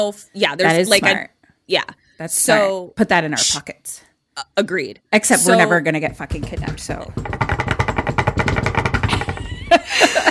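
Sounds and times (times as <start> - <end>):
speech: 0.0 - 7.6
knocking on wood: 5.8 - 9.8
laughter: 9.4 - 10.2.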